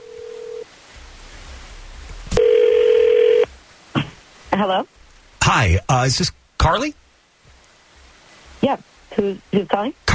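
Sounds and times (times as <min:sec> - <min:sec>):
telephone ringback tone on an outgoing call: 0:00.0 - 0:00.6, 0:02.4 - 0:03.5
speech: 0:04.6 - 0:07.0, 0:08.6 - 0:10.1.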